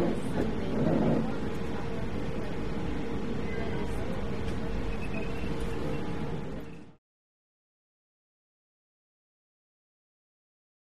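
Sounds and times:
modern subway train interior: 0.0 - 7.0.

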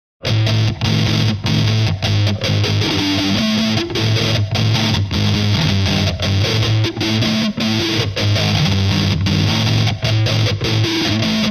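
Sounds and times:
heavy electric guitar rhythm: 0.2 - 11.5.

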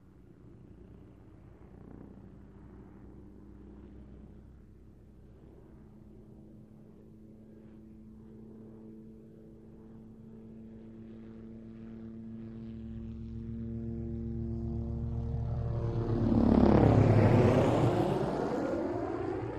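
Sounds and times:
OH-6 Loach helicopter diving by and away: 0.0 - 19.5.

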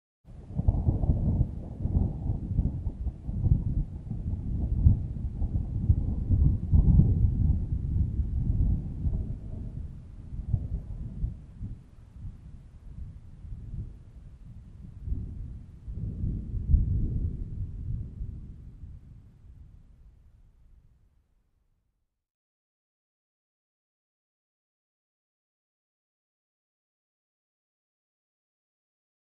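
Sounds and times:
long gentle distant thunder: 0.3 - 20.2.

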